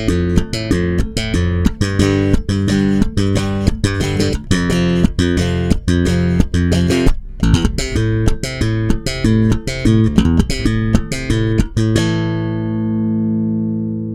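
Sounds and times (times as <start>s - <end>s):
custom bass guitar strumming: 0.0s - 14.1s.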